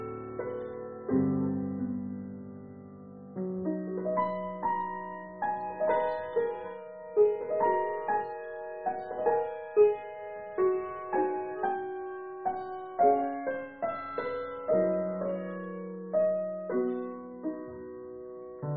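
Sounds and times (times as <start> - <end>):
piano: 0.0 - 18.7.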